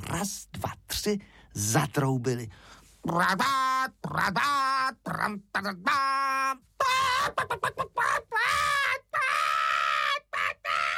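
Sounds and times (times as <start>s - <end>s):
speech: 0.1s - 6.6s
human voice imitating a hen shrieking in alarm: 3.1s - 10.9s.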